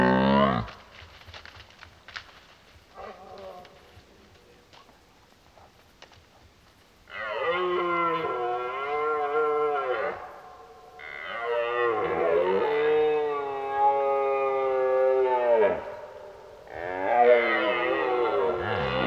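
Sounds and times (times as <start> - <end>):
red deer roaring: 0.0 - 0.8, 7.1 - 10.4, 11.0 - 19.0.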